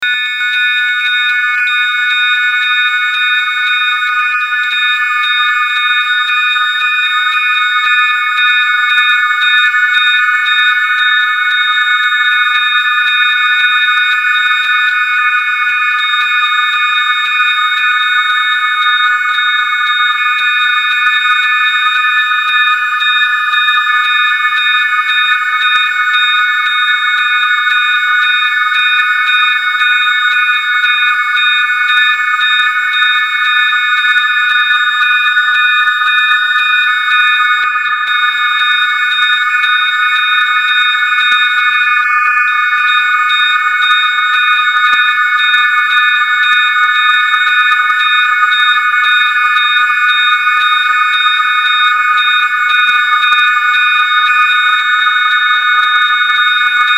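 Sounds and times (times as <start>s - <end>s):
sine wave tone: 0.0s - 56.9s.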